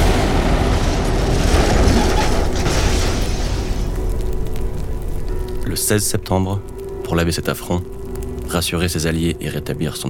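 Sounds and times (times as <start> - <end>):
explosion of airliners blown up on a former RAF base in Jordan: 0.0 - 5.0
speech: 5.8 - 10.0.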